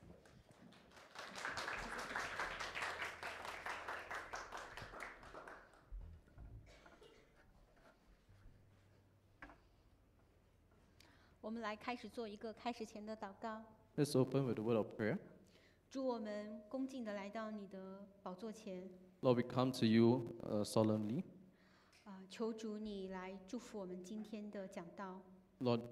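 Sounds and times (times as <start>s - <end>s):
church congregation applause: 0.0s - 5.9s
speech: 11.5s - 15.3s, 15.9s - 21.4s, 22.1s - 25.8s.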